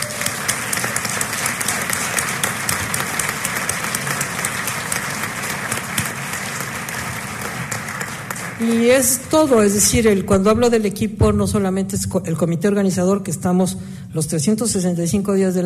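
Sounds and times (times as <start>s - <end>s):
audience applause: 0.0s - 9.2s
speech: 8.6s - 15.6s.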